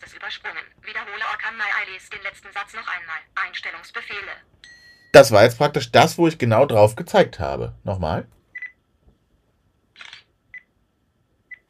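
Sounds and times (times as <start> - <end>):
speech: 0.3 - 8.4
phone camera shutter click: 10.0 - 10.3.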